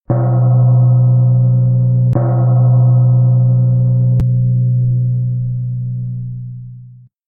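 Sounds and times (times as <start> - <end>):
gong: 0.1 - 7.1.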